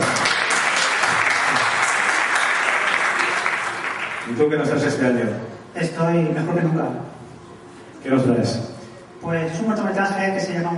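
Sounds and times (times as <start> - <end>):
audience applause: 0.0 - 4.4
speech: 4.4 - 7.2, 8.0 - 10.7.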